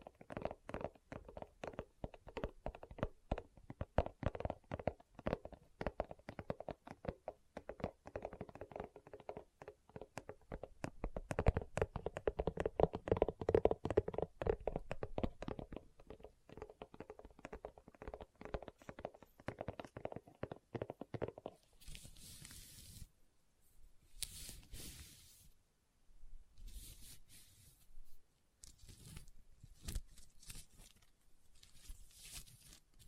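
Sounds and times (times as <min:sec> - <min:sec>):
tapping on leather in a small quiet room: 0:00.0 - 0:21.6.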